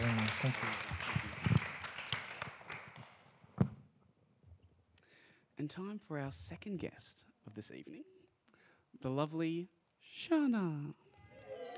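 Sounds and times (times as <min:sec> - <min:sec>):
audience applause: 0:00.0 - 0:03.2, 0:11.5 - 0:11.7
speech: 0:00.4 - 0:00.8, 0:05.7 - 0:08.2, 0:08.9 - 0:11.0.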